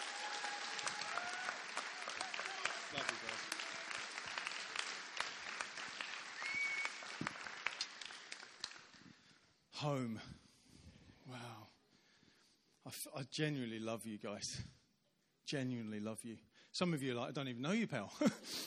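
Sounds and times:
audience applause welcoming a speaker at a worship gathering: 0.0s - 9.2s
speech: 9.8s - 10.4s, 11.3s - 11.7s, 12.9s - 14.8s, 15.5s - 18.6s.

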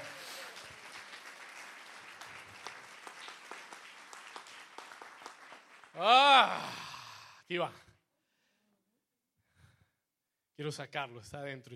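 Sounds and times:
crowd applauding: 0.0s - 6.8s
speech: 6.0s - 6.8s, 7.5s - 7.9s, 10.6s - 11.7s.

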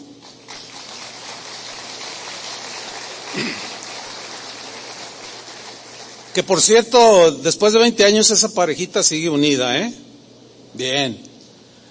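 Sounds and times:
audience applause: 0.0s - 7.0s
speech: 3.4s - 3.7s, 6.4s - 10.1s, 10.8s - 11.3s.

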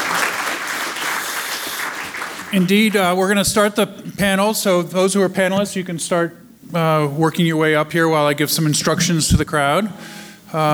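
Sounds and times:
audience applause: 0.0s - 2.7s
speech: 2.5s - 10.7s.

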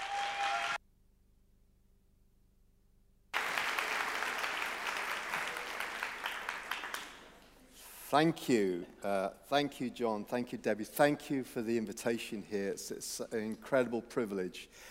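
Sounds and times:
audience applause welcoming a speaker: 0.0s - 0.8s, 3.4s - 7.5s
speech: 8.1s - 14.8s.

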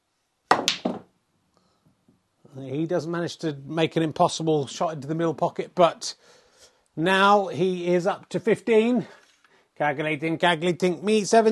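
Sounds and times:
snooker cue dropped on the floor clattering: 0.5s - 1.1s
speech: 2.6s - 6.4s, 7.0s - 9.2s, 9.8s - 11.4s.

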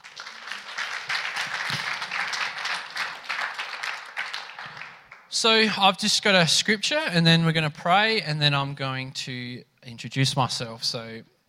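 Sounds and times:
audience applause: 0.0s - 5.8s
speech: 5.4s - 11.3s.

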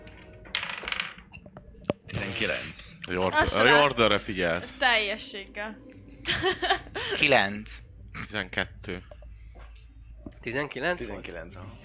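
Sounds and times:
dice rattling and tumbling across a hard surface: 0.5s - 1.3s
speech: 2.4s - 9.2s, 10.4s - 11.8s.

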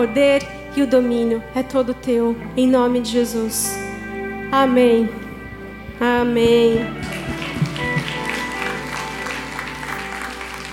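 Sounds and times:
speech: 0.0s - 3.8s, 4.5s - 5.2s, 6.0s - 7.2s
audience applause: 6.9s - 10.7s.

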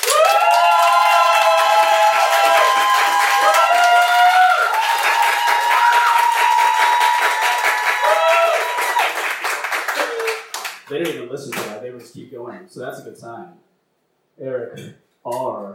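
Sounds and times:
audience applause: 0.0s - 10.9s
speech: 11.3s - 13.7s, 14.4s - 15.7s.

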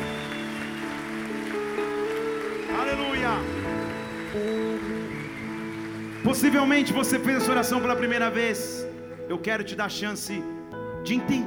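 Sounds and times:
audience applauding: 0.0s - 8.1s
speech: 3.3s - 3.6s, 4.4s - 4.9s, 6.2s - 11.4s.

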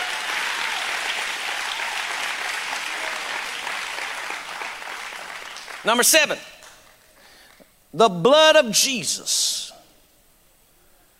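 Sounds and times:
audience clapping loudly: 0.0s - 7.6s
speech: 5.8s - 6.5s, 7.9s - 9.7s.

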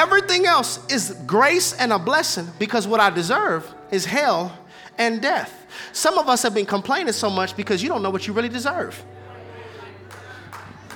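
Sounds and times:
speech: 0.1s - 9.2s
low crowd murmur: 9.0s - 10.9s
scattered audience claps: 10.1s - 10.9s.

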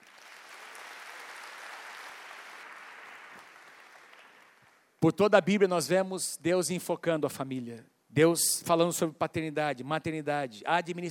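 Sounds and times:
audience applause: 0.0s - 4.9s
speech: 5.0s - 11.0s.

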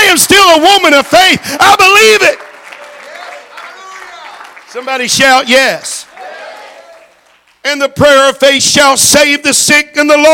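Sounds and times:
speech: 0.2s - 2.5s, 4.8s - 6.0s, 7.6s - 10.3s
audience clapping hands: 0.2s - 7.9s.

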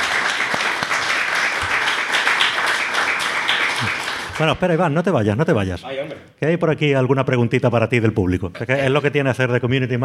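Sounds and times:
audience applause: 0.0s - 4.6s
speech: 4.4s - 10.0s.

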